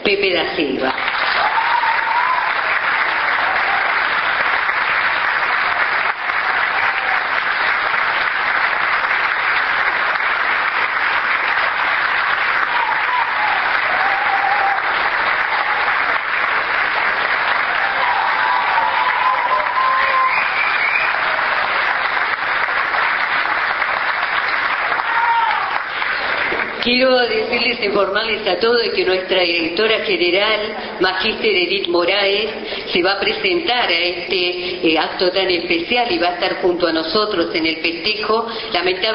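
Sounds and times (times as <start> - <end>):
speech: 0.0 - 1.2, 26.9 - 39.1
audience applause: 0.9 - 26.9.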